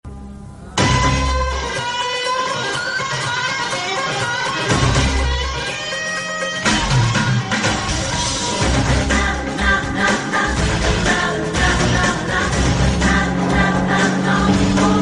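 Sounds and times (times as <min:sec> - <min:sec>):
background music: 0:00.1 - 0:15.0.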